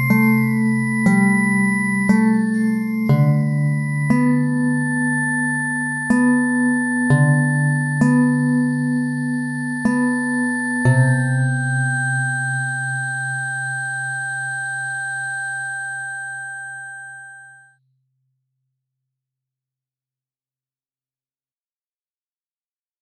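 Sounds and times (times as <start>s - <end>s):
ambivalent ambient music: 0.0s - 17.6s.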